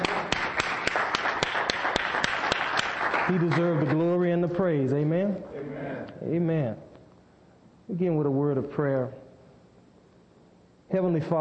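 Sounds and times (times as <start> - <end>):
audience hand clapping: 0.0 - 4.5
speech: 3.3 - 6.9, 7.9 - 9.2, 10.9 - 11.3.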